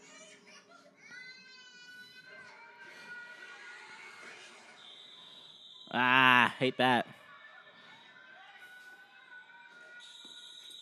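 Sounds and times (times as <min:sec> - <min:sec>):
alarm going off in Insidious Chapter 2: 0:04.8 - 0:06.1, 0:10.0 - 0:10.7
people reacting: 0:05.9 - 0:07.0
speech: 0:05.9 - 0:07.2.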